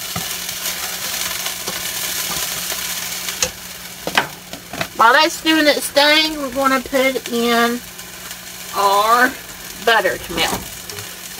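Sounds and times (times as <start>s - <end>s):
vegetables sizzling in pork drippings in a pan: 0.0s - 11.3s
speech: 5.0s - 7.9s, 8.8s - 10.7s.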